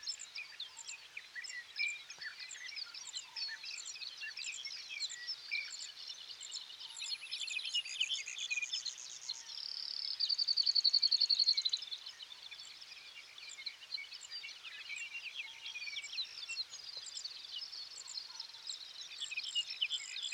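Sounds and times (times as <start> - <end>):
dawn birds in the sage: 0.0 - 20.3.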